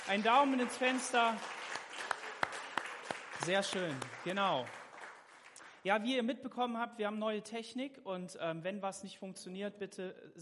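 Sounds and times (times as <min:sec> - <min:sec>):
audience applause: 0:00.0 - 0:05.8
speech: 0:00.1 - 0:01.6, 0:03.4 - 0:04.8, 0:05.8 - 0:10.4.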